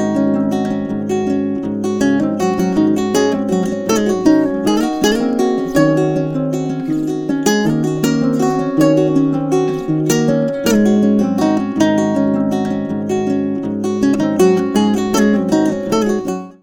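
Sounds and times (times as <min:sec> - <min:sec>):
folk ukulele music: 0:00.0 - 0:16.6.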